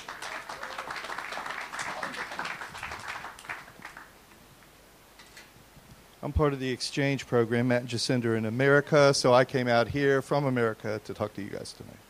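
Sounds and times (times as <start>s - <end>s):
crowd applauding: 0.0s - 4.2s
speech: 6.2s - 12.0s.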